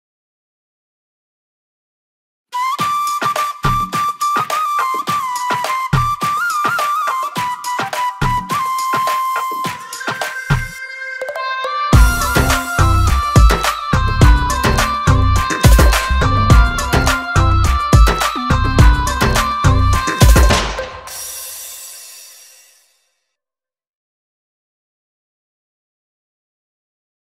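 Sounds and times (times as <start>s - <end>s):
Haryanvi background music ringtone: 2.6s - 22.7s.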